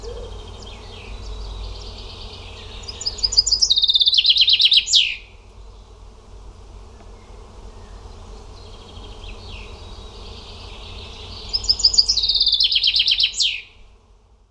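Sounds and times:
bird singing a rapid high trill: 0.0s - 1.0s, 2.6s - 5.3s, 11.4s - 13.7s.

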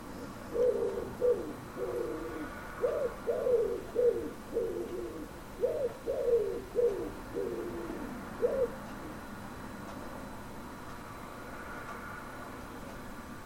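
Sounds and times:
common wood pigeon cooing: 0.0s - 9.2s.

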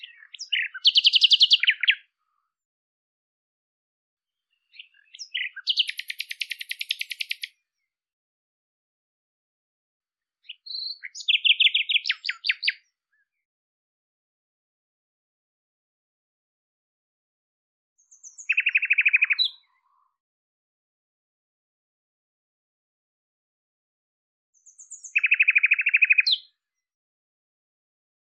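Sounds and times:
bird song with buzzy trill: 0.0s - 2.1s, 4.4s - 8.0s, 10.4s - 13.4s, 18.0s - 19.9s, 24.6s - 26.6s.

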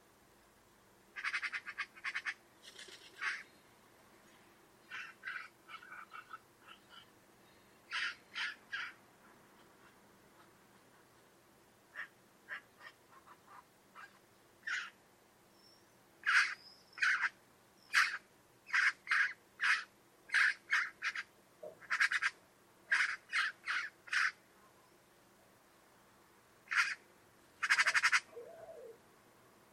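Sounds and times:
buzzy harsh bird call: 1.2s - 3.6s, 4.9s - 7.1s, 7.9s - 9.0s, 16.2s - 24.4s, 26.7s - 27.0s, 27.6s - 29.0s.

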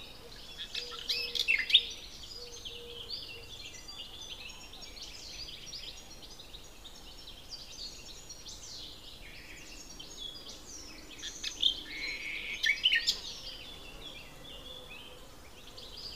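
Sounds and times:
Common nightingale Luscinia megarhynchos song: 0.0s - 16.1s.

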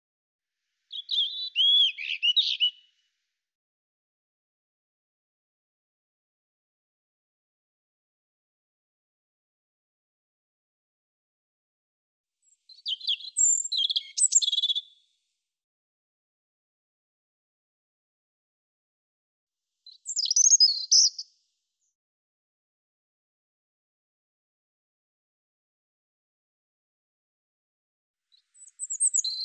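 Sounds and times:
European robin singing: 0.9s - 2.9s, 12.4s - 14.9s, 19.9s - 21.2s, 28.3s - 29.4s.

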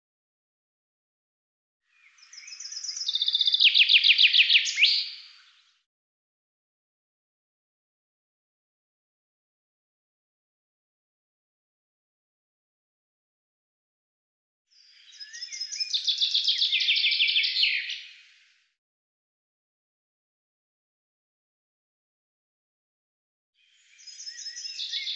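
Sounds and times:
bird giving a fast run of sharp high chirps: 1.9s - 5.8s, 14.7s - 18.4s, 23.6s - 25.1s.

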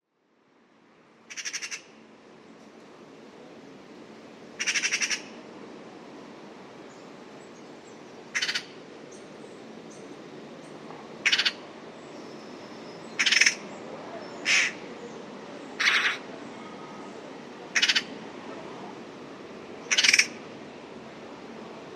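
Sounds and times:
bird giving rough pulsed pi pi pi pi calls: 8.3s - 8.7s, 11.2s - 11.6s, 13.2s - 13.6s, 14.4s - 14.8s, 15.8s - 16.2s, 17.7s - 18.1s, 19.9s - 20.4s.

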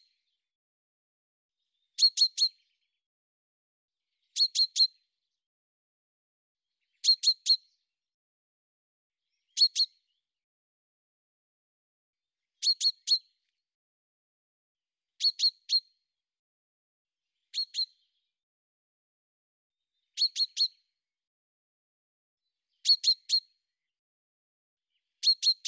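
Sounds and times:
bird chirping: 1.6s - 3.0s, 4.2s - 5.1s, 6.8s - 7.9s, 9.2s - 10.2s, 12.6s - 13.4s, 15.2s - 15.9s, 17.4s - 18.3s, 19.8s - 20.9s, 22.6s - 23.6s, 24.9s - 25.6s.

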